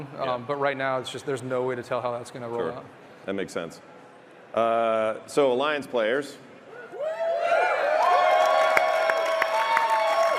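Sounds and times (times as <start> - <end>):
speech: 0.0 - 3.9, 4.5 - 6.5
convention crowd screaming and cheering: 6.7 - 10.3.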